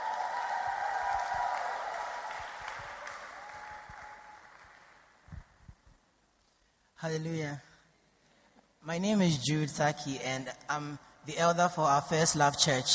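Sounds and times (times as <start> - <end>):
church congregation applauding a man giving his testimony: 0.0 - 5.5
speech: 7.0 - 7.7, 8.8 - 12.9.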